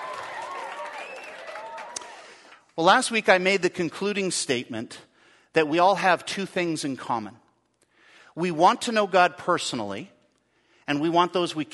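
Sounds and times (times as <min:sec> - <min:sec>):
whoops and cheers: 0:00.0 - 0:02.5
audience applauding: 0:00.0 - 0:02.8
speech: 0:02.8 - 0:07.4, 0:08.4 - 0:10.2, 0:10.9 - 0:11.7.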